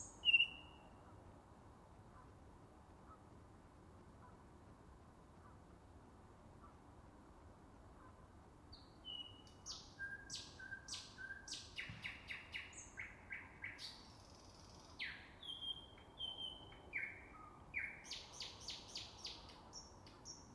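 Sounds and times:
Finnish birdsong: 0:00.0 - 0:00.9, 0:08.8 - 0:20.5.

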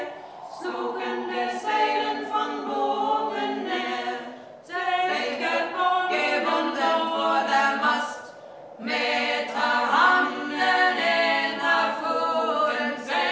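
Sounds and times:
people singing at a rehearsal in Bristol: 0:00.0 - 0:13.2.

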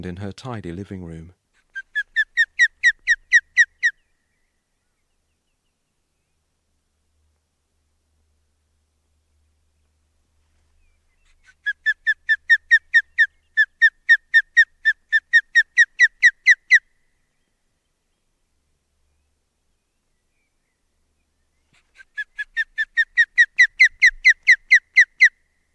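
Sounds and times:
speech: 0:00.0 - 0:01.4
brooding bird alarm calls at microphone: 0:01.6 - 0:04.0, 0:11.1 - 0:16.9, 0:21.6 - 0:25.4.

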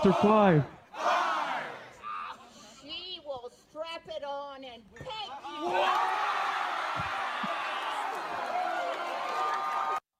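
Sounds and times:
speech: 0:00.0 - 0:00.8
audience giving a confused cheer: 0:05.6 - 0:10.0.

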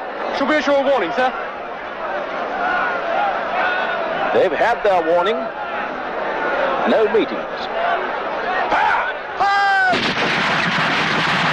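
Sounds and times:
noisy commotion: 0:00.0 - 0:11.5
speech: 0:00.4 - 0:01.5, 0:04.3 - 0:05.6, 0:06.8 - 0:07.8
rifle volley gunfire: 0:09.9 - 0:11.5.

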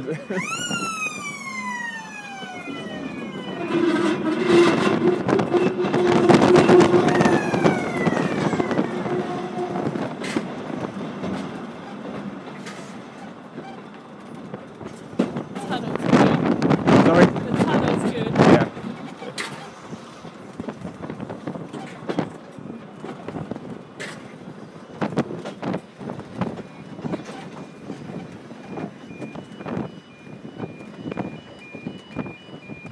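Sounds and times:
people talking: 0:00.0 - 0:01.0, 0:15.6 - 0:16.4, 0:17.0 - 0:19.6
level crossing alarm ringing: 0:00.0 - 0:09.8, 0:26.5 - 0:32.9
passing train rumble: 0:00.0 - 0:29.1
passing train horn: 0:02.9 - 0:10.1.

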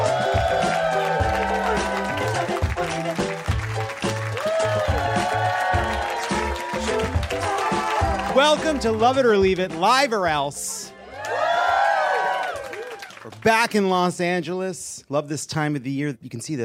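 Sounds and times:
applause and cheering from a live show audience: 0:00.0 - 0:09.8, 0:10.9 - 0:13.8
music: 0:00.0 - 0:13.9
speech: 0:08.4 - 0:10.7, 0:13.2 - 0:16.6.

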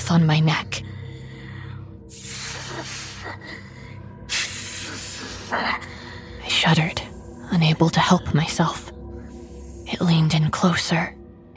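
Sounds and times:
speech: 0:00.1 - 0:00.8, 0:05.5 - 0:05.9, 0:06.6 - 0:08.8, 0:10.0 - 0:11.2
creature breathing and hissing: 0:01.9 - 0:07.5.

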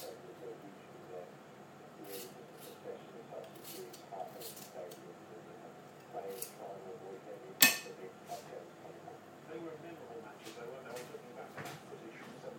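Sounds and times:
kitchen ambience: 0:00.0 - 0:12.5.

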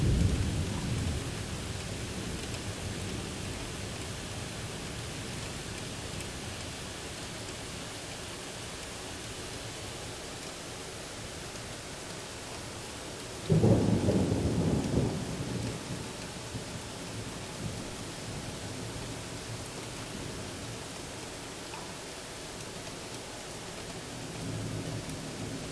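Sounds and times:
thunderstorm in northern Manhattan: 0:00.0 - 0:05.4, 0:13.4 - 0:20.6, 0:24.2 - 0:25.6.

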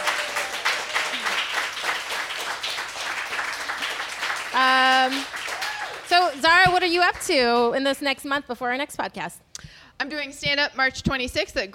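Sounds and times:
applause: 0:00.0 - 0:07.5
speech: 0:06.2 - 0:11.7.

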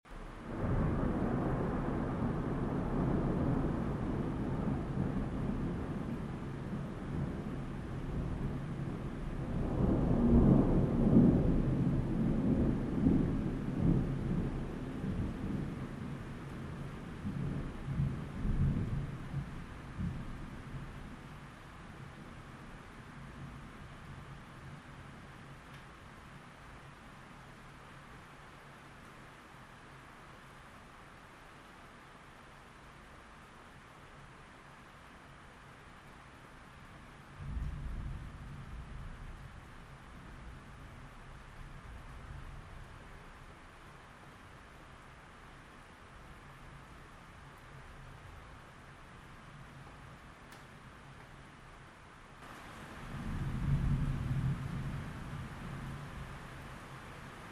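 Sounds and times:
nighttime rain: 0:00.0 - 0:57.5
thunder: 0:00.3 - 0:21.2, 0:37.4 - 0:40.7, 0:52.4 - 0:56.3.

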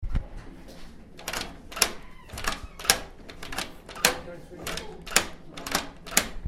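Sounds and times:
door: 0:01.2 - 0:06.4.

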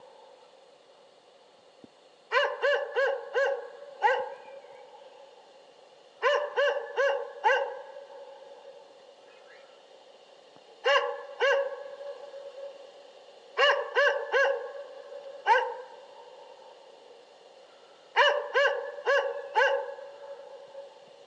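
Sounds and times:
dog barking: 0:02.3 - 0:04.5, 0:06.2 - 0:08.4, 0:10.8 - 0:12.8, 0:13.6 - 0:16.0, 0:18.2 - 0:20.9.

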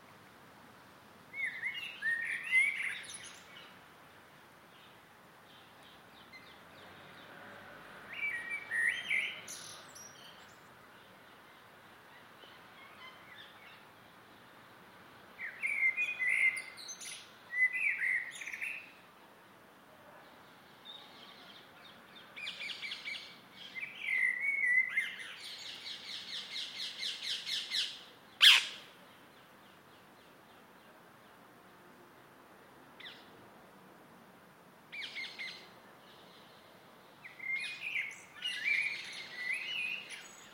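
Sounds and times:
close blackbird singing in an evening garden: 0:01.3 - 0:03.7, 0:08.1 - 0:10.7, 0:15.4 - 0:19.0, 0:20.8 - 0:30.6, 0:35.0 - 0:36.6, 0:37.2 - 0:40.5
evening garden birds singing: 0:01.4 - 0:03.8, 0:08.1 - 0:13.9, 0:15.4 - 0:19.0, 0:20.4 - 0:31.4, 0:34.9 - 0:40.5
parakeets calling in an evening garden: 0:28.4 - 0:28.8.

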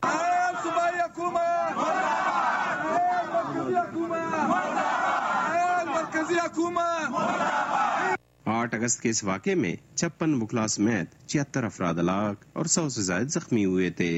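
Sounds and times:
lawyers chanting slogans at a sit-in outside the Balochistan Assembly: 0:00.0 - 0:08.2
speech: 0:06.2 - 0:14.1.

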